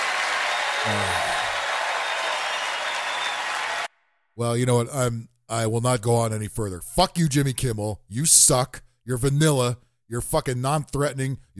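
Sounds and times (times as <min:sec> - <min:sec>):
audience applause: 0:00.0 - 0:03.9
speech: 0:04.4 - 0:11.5.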